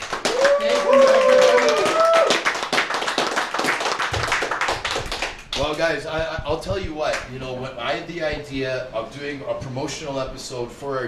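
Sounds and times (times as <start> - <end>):
applause: 0.0 - 5.7
speech: 5.7 - 11.0.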